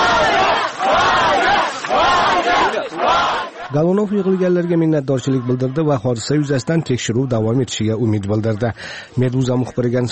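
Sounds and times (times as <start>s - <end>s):
crowd of colleagues and activists cheering outside Moscow police building: 0.0s - 7.6s
speech: 3.7s - 10.1s.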